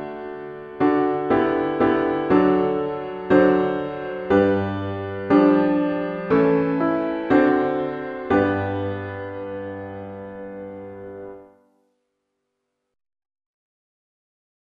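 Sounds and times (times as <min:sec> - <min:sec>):
winter rain piano music: 0:00.0 - 0:11.7.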